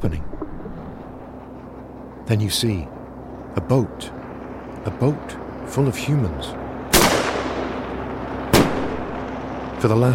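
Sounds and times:
speech: 2.3s - 3.0s, 3.6s - 4.2s, 4.8s - 6.6s, 9.8s - 10.1s
underwater explosives and shotgun bangers: 6.9s - 7.9s, 8.5s - 9.2s.

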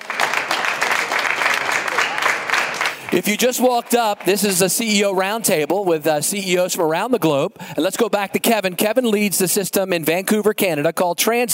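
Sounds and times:
audience round of applause: 0.0s - 5.1s
speech: 3.1s - 11.5s.

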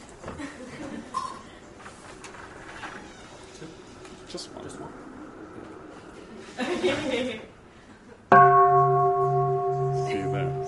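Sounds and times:
laughter: 0.3s - 1.6s, 6.2s - 8.2s
speech: 4.3s - 5.1s, 6.8s - 7.4s
bell ringing: 8.3s - 10.6s.

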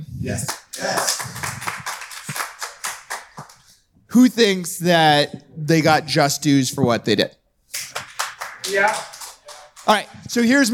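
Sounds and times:
speech: 0.2s - 1.2s, 4.2s - 7.4s, 8.7s - 9.1s, 9.8s - 10.7s
live audience clapping: 0.4s - 3.7s, 7.7s - 10.4s.

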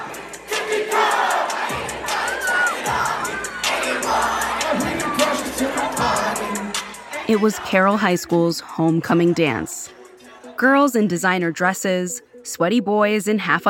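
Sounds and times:
hundreds of kids shouting along to a song: 1.1s - 8.1s
speech: 7.3s - 9.9s, 10.6s - 13.6s.

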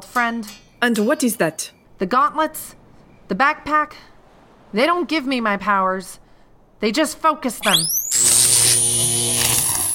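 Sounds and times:
speech: 0.2s - 4.1s, 4.7s - 6.2s, 6.8s - 8.3s
crackling electricity: 7.6s - 9.9s.

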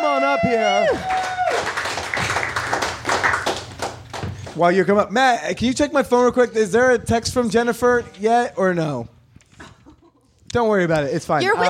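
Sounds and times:
speech: 0.4s - 1.7s, 4.6s - 9.2s, 10.5s - 11.6s
audience applause: 0.6s - 4.6s.

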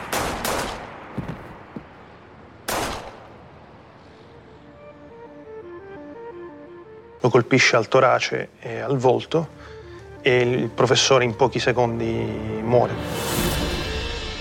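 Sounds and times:
gunshots: 0.0s - 1.6s, 2.6s - 3.3s
speech: 7.2s - 13.6s.

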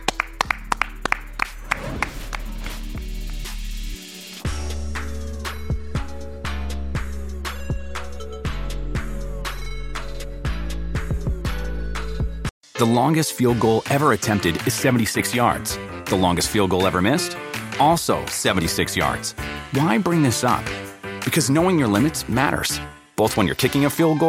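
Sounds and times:
rhythmic hand claps: 0.0s - 4.4s, 16.8s - 18.8s
loud bass-heavy music bed: 0.0s - 24.2s
speech: 12.8s - 24.2s.

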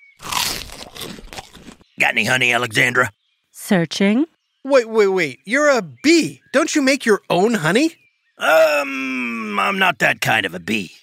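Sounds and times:
biting into dry toast: 0.2s - 1.8s
speech: 2.0s - 11.0s.

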